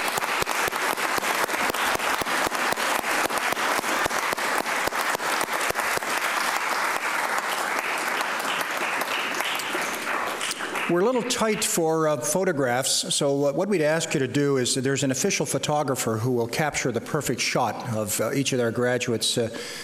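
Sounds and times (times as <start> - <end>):
graduates applauding: 0.0 - 11.7
speech: 10.9 - 19.8.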